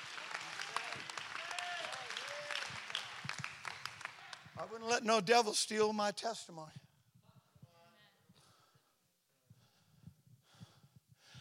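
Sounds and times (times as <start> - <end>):
audience clapping: 0.0 - 5.0
speech: 4.6 - 6.8.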